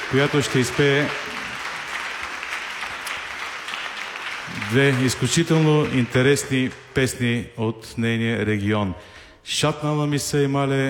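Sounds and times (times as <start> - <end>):
audience applause for a folk singer: 0.0 - 6.8
speech: 0.1 - 1.3, 4.7 - 10.8.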